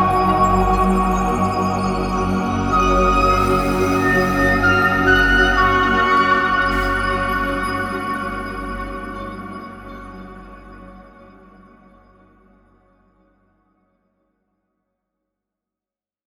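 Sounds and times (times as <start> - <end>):
new age synth wash: 0.0 - 11.7.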